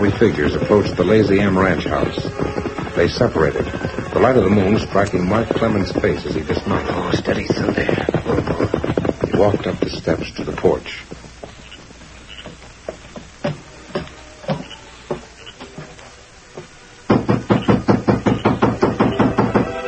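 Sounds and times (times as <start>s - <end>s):
speech: 0.0s - 8.7s, 9.4s - 11.1s
knocking on a door: 0.4s - 10.0s, 16.6s - 19.7s.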